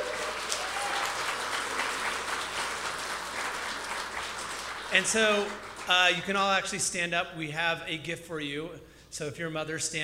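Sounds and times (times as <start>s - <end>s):
large audience applause: 0.0s - 6.2s
speech: 4.9s - 10.0s.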